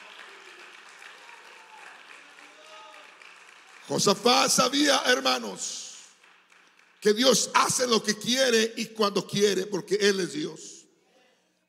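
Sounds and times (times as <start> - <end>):
audience applause: 0.0 - 7.3
speech: 3.9 - 5.8, 7.0 - 10.8.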